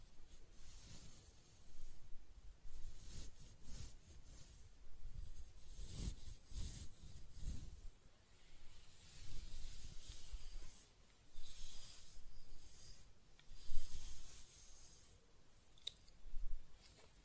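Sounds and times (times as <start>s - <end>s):
hair being scratched, brushed and stroked: 0.0s - 15.2s, 15.8s - 17.2s.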